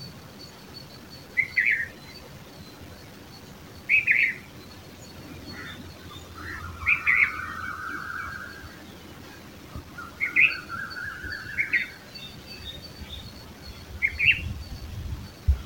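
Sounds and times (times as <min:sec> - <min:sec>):
red-vented bulbul Pycnonotus cafer calling: 0:01.3 - 0:02.3, 0:03.8 - 0:14.8.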